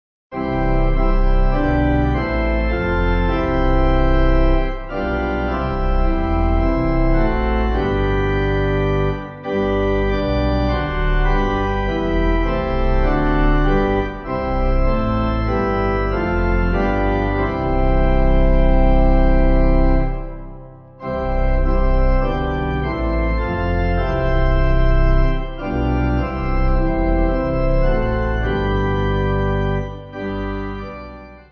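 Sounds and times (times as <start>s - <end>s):
pipe organ hymn backing: 0.3s - 31.5s.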